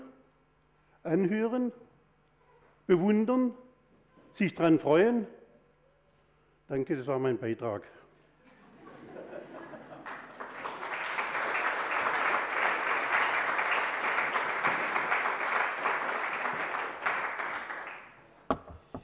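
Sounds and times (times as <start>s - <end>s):
speech: 1.0s - 1.9s, 2.9s - 3.6s, 4.4s - 5.4s, 6.7s - 8.0s
laughter: 8.4s - 10.7s
audience applause during a sermon: 9.7s - 18.2s.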